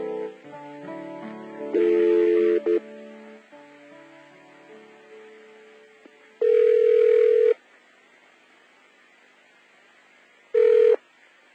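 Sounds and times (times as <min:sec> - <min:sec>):
telephone line dial tone: 0:01.7 - 0:02.8, 0:06.4 - 0:07.6, 0:10.6 - 0:11.0.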